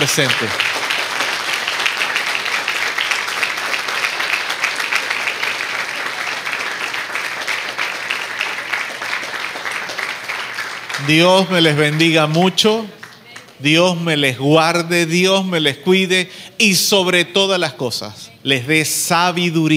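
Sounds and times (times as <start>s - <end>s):
speech: 0.0s - 0.7s, 11.0s - 13.0s, 13.6s - 19.7s
audience applause: 0.0s - 13.5s.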